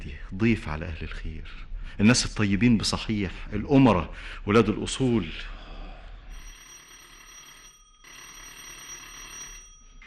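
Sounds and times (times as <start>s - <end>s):
speech: 0.4s - 5.6s
electric doorbell ringing: 6.4s - 10.0s.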